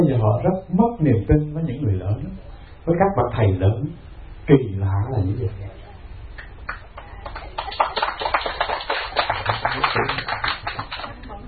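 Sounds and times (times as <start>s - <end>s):
speech: 0.0s - 5.8s
audience applause at a lecture: 6.7s - 11.3s.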